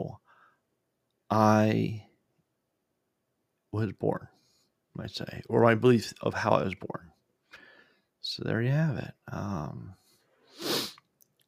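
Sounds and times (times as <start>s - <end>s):
speech: 1.3s - 2.0s, 3.7s - 4.4s, 5.0s - 7.1s, 8.2s - 10.0s
person sniffling from allergies: 10.4s - 11.1s.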